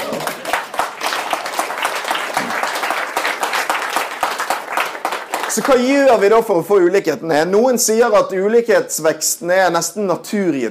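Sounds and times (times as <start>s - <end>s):
audience applause: 0.0s - 6.4s
speech: 5.6s - 10.6s.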